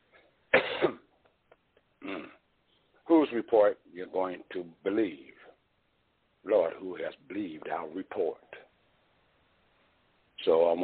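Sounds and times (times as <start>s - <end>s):
person coughing after a drink went down the wrong pipe: 0.5s - 1.1s
speech: 3.3s - 5.3s, 6.4s - 8.6s, 10.4s - 10.8s.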